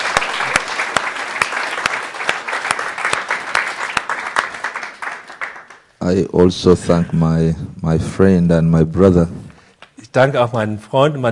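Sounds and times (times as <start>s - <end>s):
audience hand clapping: 0.0s - 6.0s
speech: 6.1s - 9.4s, 10.1s - 11.3s.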